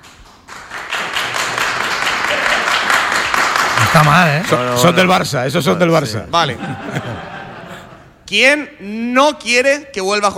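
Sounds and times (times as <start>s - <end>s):
audience applause: 0.0s - 5.2s
speech: 3.9s - 7.4s, 8.3s - 10.3s
laughter: 6.3s - 8.2s.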